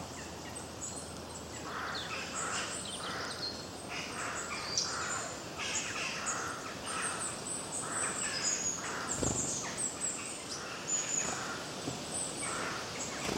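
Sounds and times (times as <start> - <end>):
birds chirping in chorus: 0.8 - 13.3.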